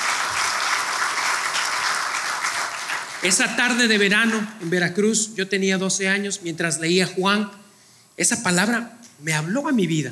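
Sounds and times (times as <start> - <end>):
audience applauding: 0.0 - 4.1
speech: 3.2 - 7.6, 8.2 - 10.1.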